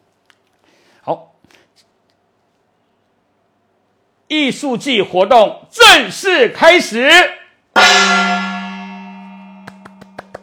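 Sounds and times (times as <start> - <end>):
speech: 1.0 - 1.6, 4.3 - 7.4
gong struck to open show: 7.8 - 10.4.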